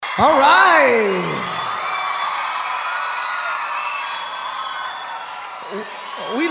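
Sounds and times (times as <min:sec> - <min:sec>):
rock concert crowd cheering and whooping: 0:00.0 - 0:06.4
rock concert crowd applause: 0:00.1 - 0:06.4
speech: 0:00.2 - 0:01.5.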